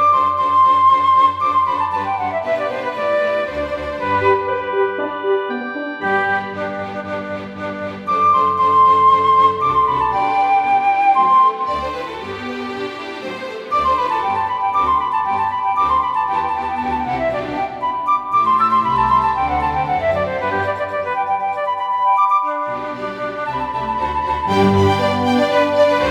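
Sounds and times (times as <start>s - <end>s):
classical flute concerto: 0.0s - 26.1s.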